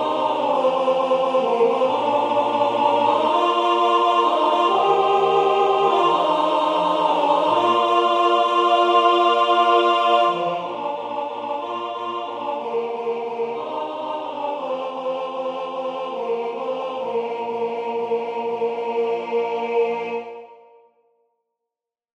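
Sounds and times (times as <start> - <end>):
tenor singing a carol: 0.0 - 20.6.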